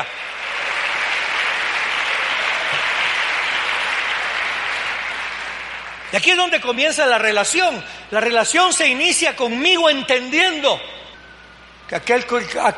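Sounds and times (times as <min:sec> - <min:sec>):
audience applause: 0:00.0 - 0:06.4
speech: 0:06.1 - 0:11.0, 0:11.9 - 0:12.7.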